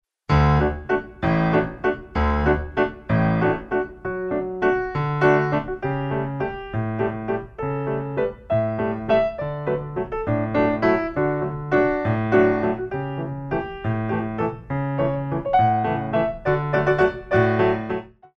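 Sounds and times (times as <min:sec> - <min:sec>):
big waltz: 0:00.3 - 0:18.2.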